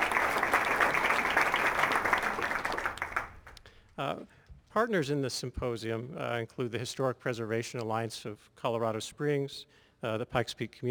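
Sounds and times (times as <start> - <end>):
audience applause: 0.0 - 3.5
speech: 4.8 - 10.8.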